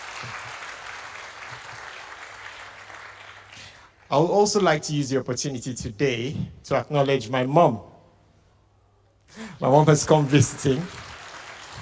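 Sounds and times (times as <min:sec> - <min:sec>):
audience round of applause: 0:00.0 - 0:03.7, 0:09.8 - 0:11.7
speech: 0:04.1 - 0:07.9, 0:09.6 - 0:11.0.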